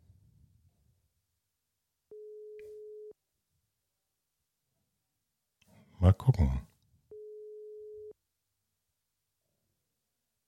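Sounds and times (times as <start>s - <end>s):
telephone line ringing tone: 2.1s - 3.2s, 7.1s - 8.2s
speech: 6.0s - 6.7s.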